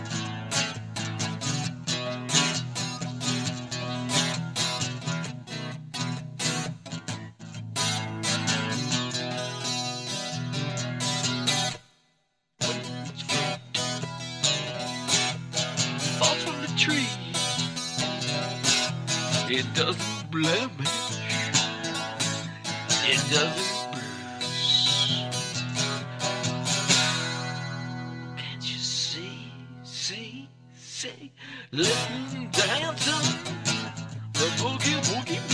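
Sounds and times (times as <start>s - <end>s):
boogie woogie blues music: 0.0s - 11.8s, 12.6s - 28.6s, 31.8s - 35.5s.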